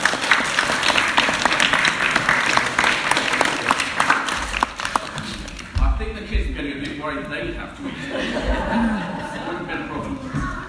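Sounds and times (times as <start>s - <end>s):
audience clapping: 0.0s - 5.8s
speech: 7.1s - 9.1s
laughter: 7.8s - 10.6s.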